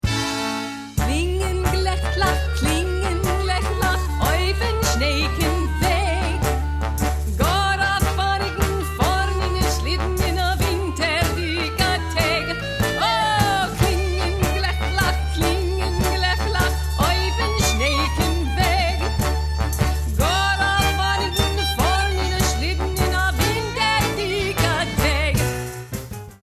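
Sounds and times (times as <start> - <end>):
Christmas song: 0.0 - 26.1.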